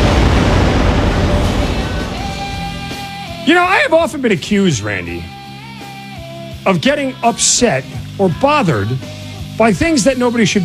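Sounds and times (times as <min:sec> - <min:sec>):
volcano eruption sound effect: 0:00.0 - 0:03.5
speech: 0:03.4 - 0:05.4, 0:06.6 - 0:10.6.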